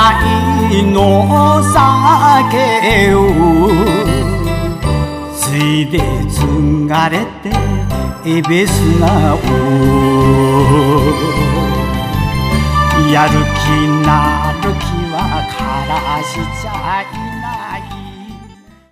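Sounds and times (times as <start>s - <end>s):
enka music: 0.0s - 18.9s.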